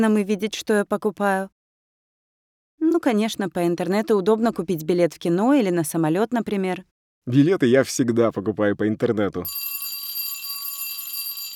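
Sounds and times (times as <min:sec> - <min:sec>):
speech: 0:00.0 - 0:01.6, 0:02.8 - 0:09.8
school bell ringing for class: 0:09.5 - 0:11.5.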